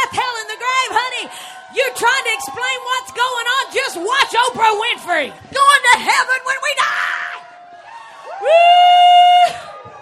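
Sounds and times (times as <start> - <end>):
studio audience cheering: 0.0 - 9.9
speech: 3.9 - 6.5
high-pitched whoop: 7.2 - 9.9.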